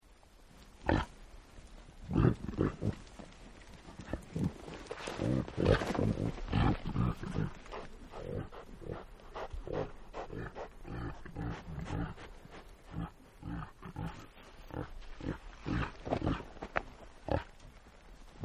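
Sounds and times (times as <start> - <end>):
reindeer grunts: 2.1 - 3.2, 4.0 - 16.6.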